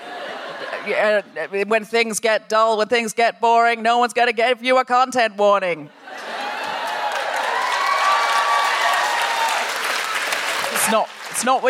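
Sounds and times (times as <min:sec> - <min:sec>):
laughter: 0:00.0 - 0:01.5, 0:05.9 - 0:07.7
speech: 0:00.7 - 0:06.0, 0:10.9 - 0:11.6
audience applause: 0:06.1 - 0:11.6.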